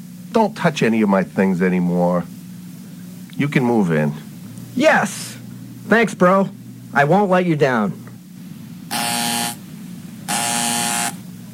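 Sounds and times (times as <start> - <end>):
low hum: 0.0 - 11.5
speech: 0.4 - 2.4, 3.4 - 4.2, 4.8 - 8.0
door buzzer: 8.9 - 9.6, 10.3 - 11.2.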